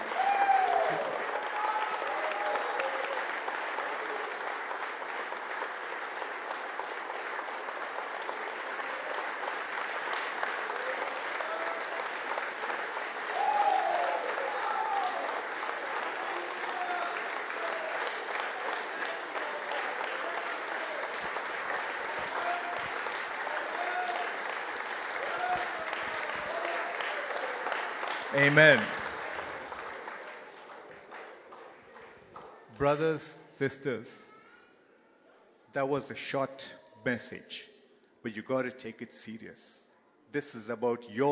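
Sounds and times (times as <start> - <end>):
audience clapping loudly: 0.0 - 33.0
speech: 28.4 - 29.0, 32.8 - 34.2, 35.7 - 41.3.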